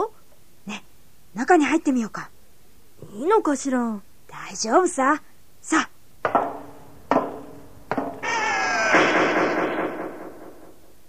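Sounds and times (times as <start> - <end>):
speech: 1.5 - 2.3, 3.2 - 5.9
door closing shut: 6.3 - 10.8.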